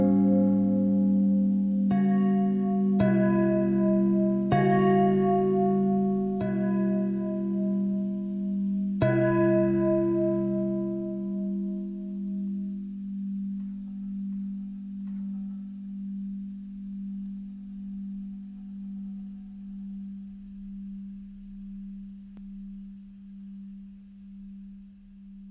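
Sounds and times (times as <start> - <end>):
long pentatonic bell thread: 0.0 - 20.1.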